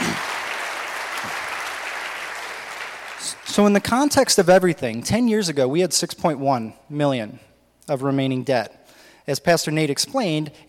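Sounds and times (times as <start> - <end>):
clapping: 0.0 - 3.6
speech: 3.2 - 10.6.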